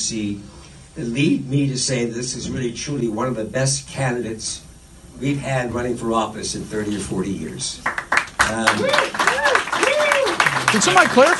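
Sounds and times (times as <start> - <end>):
speech: 0.1 - 9.2, 10.7 - 11.3
small group clapping: 7.8 - 11.3.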